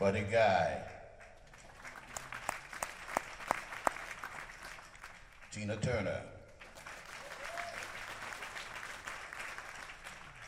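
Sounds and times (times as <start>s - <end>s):
speech: 0.0s - 1.0s, 5.6s - 6.4s
audience applause: 1.3s - 5.6s, 6.6s - 10.4s.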